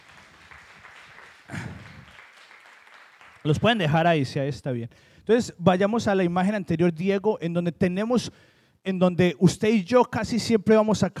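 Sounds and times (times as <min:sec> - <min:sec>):
applause for actors: 0:00.0 - 0:03.9
speech: 0:03.4 - 0:11.1.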